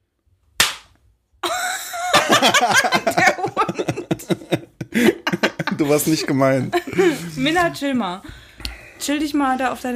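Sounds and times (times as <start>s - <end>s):
hand clap: 0.6s - 1.0s
laughter: 1.4s - 7.8s
speech: 2.3s - 3.3s, 5.9s - 8.4s, 9.0s - 9.9s.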